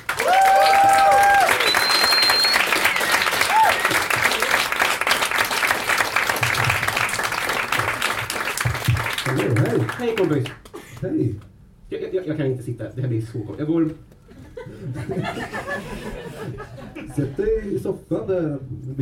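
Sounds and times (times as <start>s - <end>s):
audience applause: 0.0s - 10.8s
whoops and shouts: 0.2s - 2.6s, 3.4s - 4.0s
speech: 10.0s - 14.2s, 14.8s - 19.0s
laughter: 14.3s - 17.5s.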